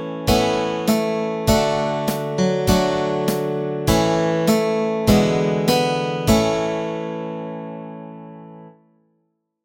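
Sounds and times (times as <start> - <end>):
hymn melody and chords: 0.0 - 7.6.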